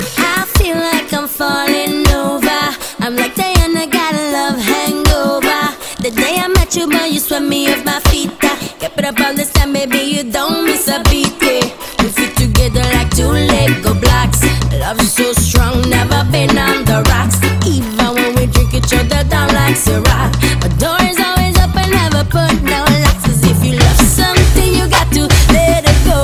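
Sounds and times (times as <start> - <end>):
Hawaiian reggae music: 0.0 - 26.2.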